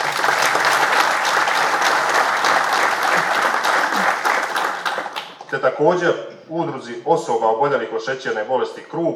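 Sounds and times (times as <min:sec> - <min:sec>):
audience applause at a municipal day ceremonial session: 0:00.0 - 0:05.5
speech: 0:05.6 - 0:09.1.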